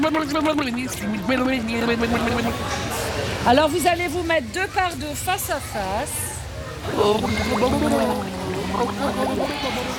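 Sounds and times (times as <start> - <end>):
speech: 0.0 - 9.9
blowing bubbles in water through mouth: 6.9 - 9.9.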